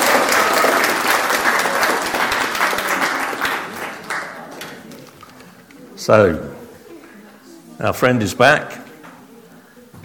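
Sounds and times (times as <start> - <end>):
audience applauding: 0.0 - 4.8
speech: 6.1 - 6.5, 7.8 - 8.8.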